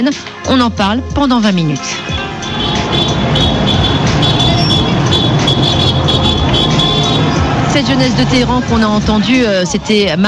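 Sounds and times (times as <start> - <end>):
speech: 0.0 - 2.2, 7.7 - 10.2
street noise: 0.0 - 10.2
car horns honking in city streets: 1.9 - 8.5.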